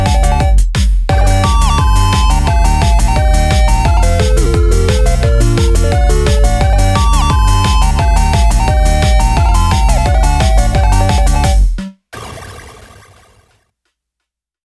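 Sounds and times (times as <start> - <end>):
ending background music: 0.0 - 11.8.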